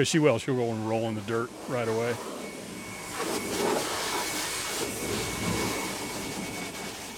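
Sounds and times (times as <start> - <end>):
speech: 0.0 - 2.4
dog being washed with water: 3.1 - 7.1.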